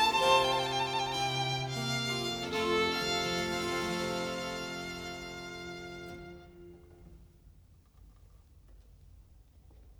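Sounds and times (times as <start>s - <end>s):
violin sonata in F major: 0.0s - 7.2s.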